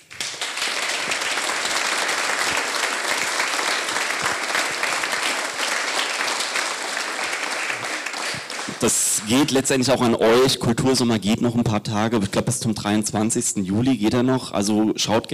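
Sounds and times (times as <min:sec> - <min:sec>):
audience applause: 0:00.0 - 0:09.6
speech: 0:08.8 - 0:15.3.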